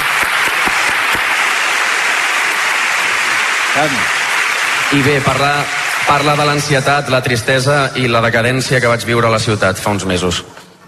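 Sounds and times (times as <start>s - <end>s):
audience applauding: 0.0s - 8.1s
speech: 3.8s - 4.2s, 4.9s - 10.5s.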